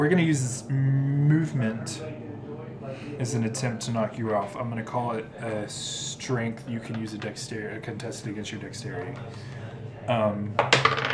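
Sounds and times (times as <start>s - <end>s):
speech: 0.0s - 11.1s
die clattering and bouncing on a hard surface: 10.6s - 11.1s.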